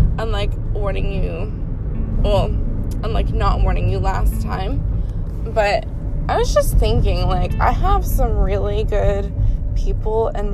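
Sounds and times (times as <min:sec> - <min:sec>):
car interior rumble while driving: 0:00.0 - 0:10.5
speech: 0:00.4 - 0:10.5.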